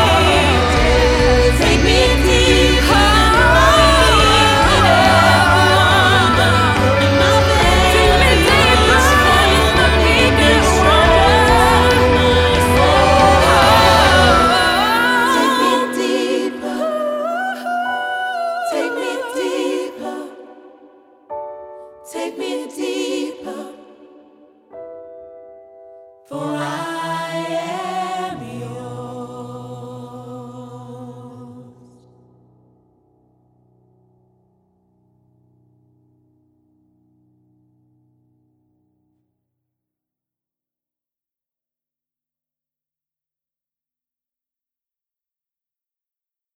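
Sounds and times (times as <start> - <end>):
gospel music: 0.0 - 32.2.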